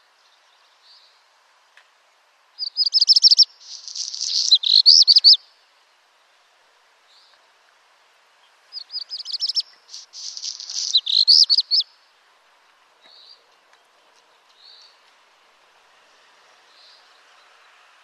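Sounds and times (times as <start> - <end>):
black redstart song: 0.0 - 1.3, 2.6 - 5.7, 8.4 - 12.1, 13.0 - 15.1, 16.6 - 17.9
faint low noise: 0.0 - 18.0.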